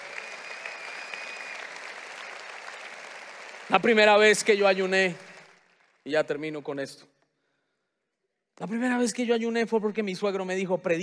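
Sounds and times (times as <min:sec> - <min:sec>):
audience applause: 0:00.0 - 0:06.1
speech: 0:03.7 - 0:05.2, 0:06.0 - 0:07.1, 0:08.6 - 0:11.0.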